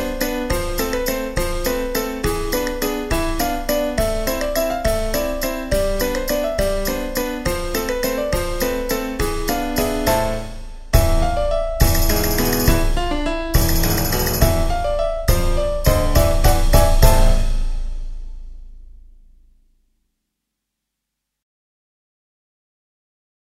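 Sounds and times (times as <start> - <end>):
waltz music: 0.0 - 18.6.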